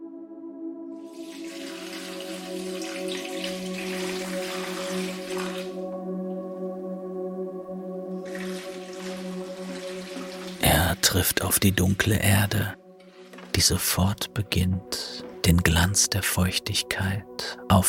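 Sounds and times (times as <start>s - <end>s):
water pouring from a watering can: 1.1s - 6.0s, 8.1s - 15.4s
speech: 11.1s - 12.8s, 13.6s - 17.8s.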